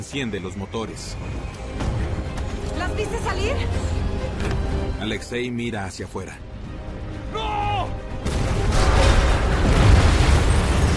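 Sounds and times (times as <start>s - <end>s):
speech: 0.0s - 1.9s, 2.7s - 6.5s
huge explosion: 8.2s - 10.9s.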